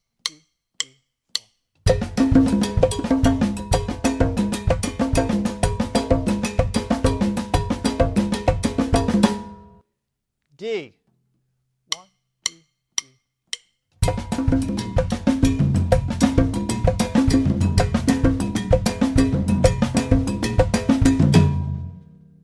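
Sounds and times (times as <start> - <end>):
Bembe rhythms on Latin percussion: 1.8 - 9.6, 14.0 - 21.8.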